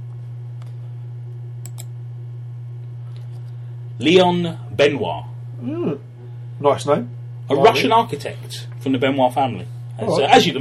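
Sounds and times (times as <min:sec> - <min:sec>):
steady low electrical hum: 0:00.0 - 0:10.5
computer mouse clicks: 0:01.6 - 0:01.9
speech: 0:04.0 - 0:10.5.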